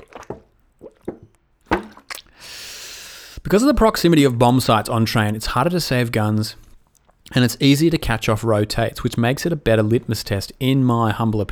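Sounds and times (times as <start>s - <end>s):
person gulping water: 0.0s - 2.4s
speech: 3.5s - 6.6s, 7.3s - 11.5s.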